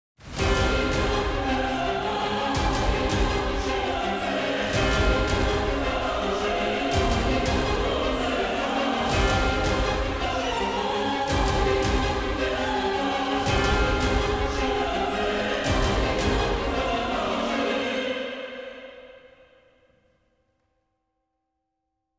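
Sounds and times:
music: 0.2 - 19.7.

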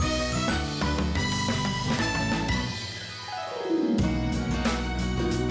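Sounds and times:
puzzle clear jingle: 0.0 - 5.4.

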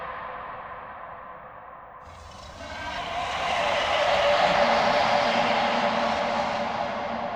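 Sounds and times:
dungeon monster: 2.1 - 7.3.

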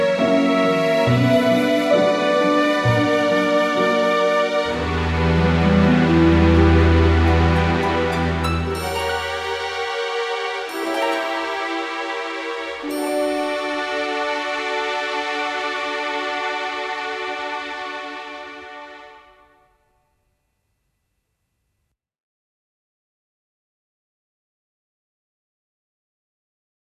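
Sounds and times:
romantic emotional music in four-four: 0.0 - 19.7.

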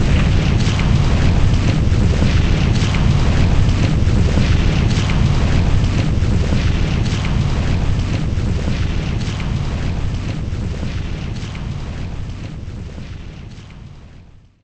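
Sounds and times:
earthquake rumble: 0.0 - 14.6.

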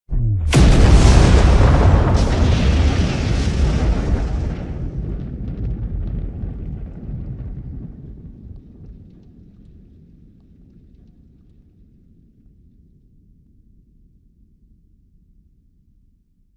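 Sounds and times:
crater tower explosion: 0.1 - 9.4.

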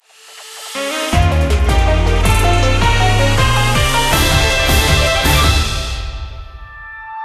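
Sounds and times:
victory jingle: 0.9 - 6.7.

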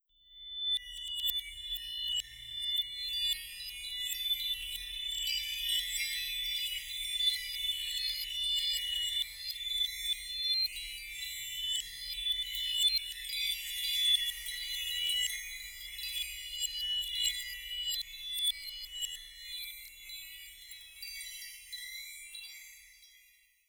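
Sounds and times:
chimes: 0.5 - 23.6.

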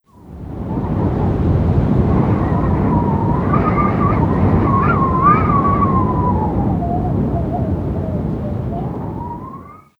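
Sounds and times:
whistling wind: 0.0 - 9.9.

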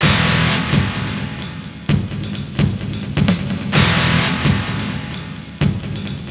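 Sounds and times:
strings in G sharp: 0.0 - 6.2.

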